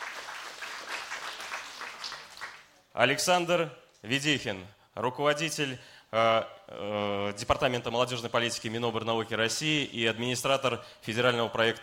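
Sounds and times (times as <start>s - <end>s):
audience applause: 0.0s - 2.7s
speech: 3.0s - 11.8s.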